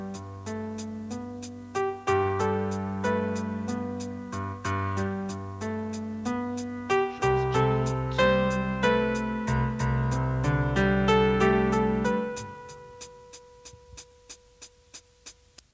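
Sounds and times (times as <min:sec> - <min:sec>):
piano: 0:00.0 - 0:15.4
person singing: 0:06.9 - 0:10.9.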